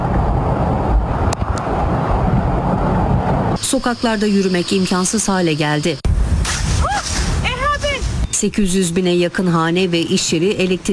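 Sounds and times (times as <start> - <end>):
roaring wind of Hurricane Isaias gusting up to 165 km/h: 0.0 - 8.5
speech: 3.8 - 6.1, 8.4 - 10.9.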